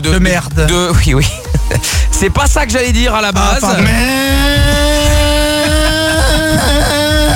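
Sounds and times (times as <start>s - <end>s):
speech: 0.0s - 5.0s, 6.5s - 7.3s
laughter: 0.9s - 2.3s, 3.4s - 7.3s
scooter engine buzzing loudly: 3.6s - 7.3s.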